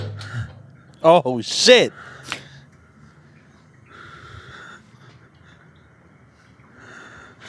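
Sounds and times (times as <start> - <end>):
heavy frightened breathing in a video: 0.1 - 0.8, 1.9 - 2.7, 3.8 - 5.9, 6.6 - 7.4
speech: 1.0 - 2.1.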